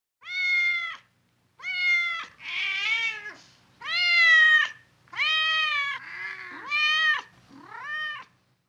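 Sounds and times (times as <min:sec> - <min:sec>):
animals: 0:01.6 - 0:08.4.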